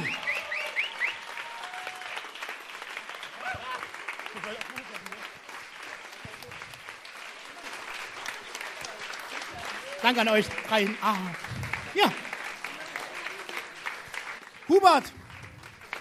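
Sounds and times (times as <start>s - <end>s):
voices and whistles: 0.0s - 1.3s
audience applause: 0.0s - 15.9s
speech: 10.0s - 12.2s, 14.8s - 15.2s.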